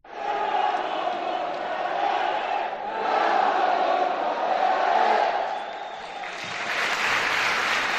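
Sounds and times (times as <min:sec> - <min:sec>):
stadium fans shouting and cheering: 0:00.1 - 0:07.9.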